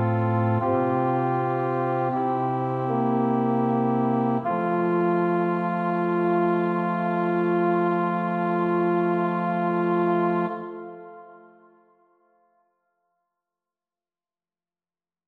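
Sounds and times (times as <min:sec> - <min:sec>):
musical accompaniment: 0:00.0 - 0:12.0.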